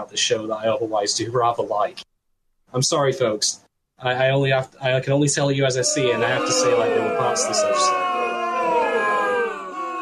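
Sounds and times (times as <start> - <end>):
speech: 0.0 - 2.1, 2.7 - 8.0
booing sound effect played from a WAV file: 5.5 - 10.0.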